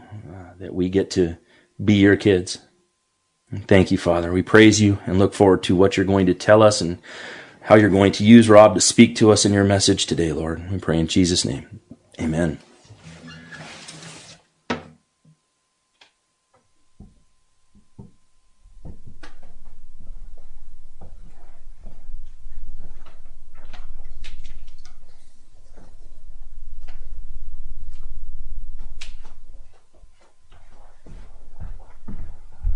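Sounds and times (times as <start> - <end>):
speech: 0.4 - 2.7, 3.5 - 12.7
objects shifted around during a sermon, knocking and clunking: 17.0 - 22.3
low rumble: 18.7 - 32.7.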